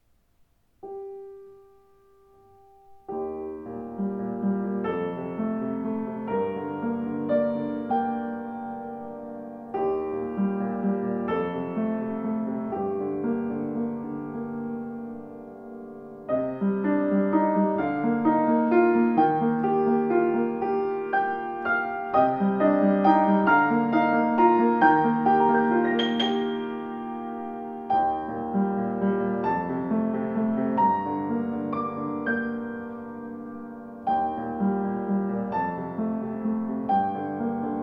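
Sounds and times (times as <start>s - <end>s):
Schimmel piano: 0.0s - 37.8s.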